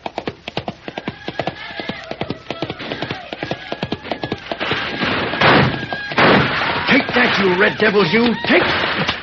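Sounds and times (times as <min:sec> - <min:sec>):
horse galloping hooves: 0:00.0 - 0:09.2
speech: 0:07.3 - 0:09.2.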